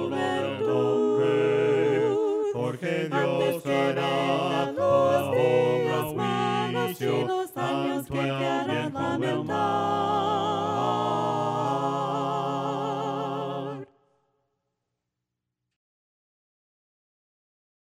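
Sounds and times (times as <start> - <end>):
voices singing hymns a cappella: 0.0 - 14.0.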